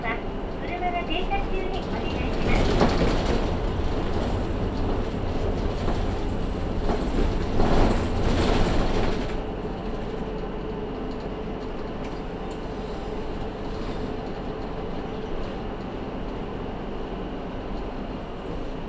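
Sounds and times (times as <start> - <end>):
two-car Matsuura Railway train wheels and motor rumbling: 0.0 - 18.8.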